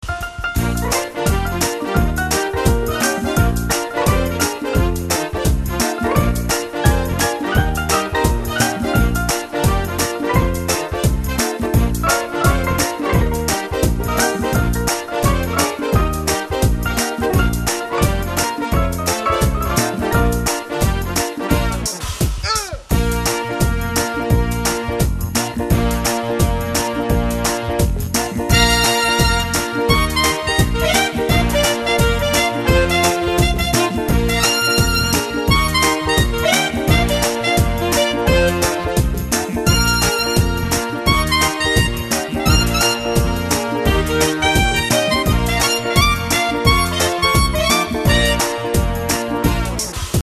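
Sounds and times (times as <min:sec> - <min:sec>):
cool mambo music: 0:00.0 - 0:50.2.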